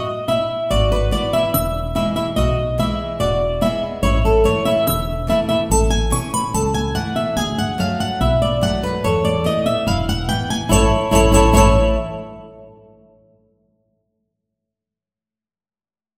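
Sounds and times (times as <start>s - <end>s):
polka music: 0.0s - 12.9s.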